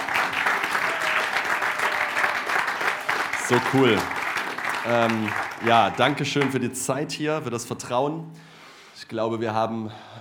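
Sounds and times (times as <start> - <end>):
audience applause: 0.0 - 6.6
speech: 3.5 - 4.2, 4.8 - 10.1.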